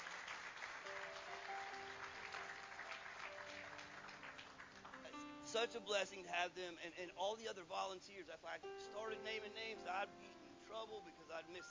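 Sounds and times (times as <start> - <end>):
round of applause: 0.0 - 5.3
speech: 5.5 - 11.6.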